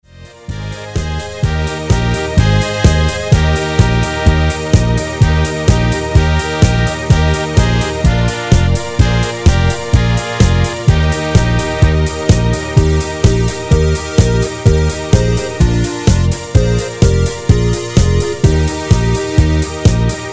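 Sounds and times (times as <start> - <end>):
MIDI music: 0.1 - 20.3.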